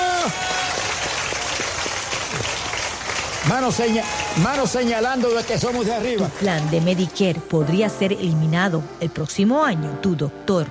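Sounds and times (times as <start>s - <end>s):
crowd applause: 0.0s - 7.2s
speech: 3.5s - 10.7s.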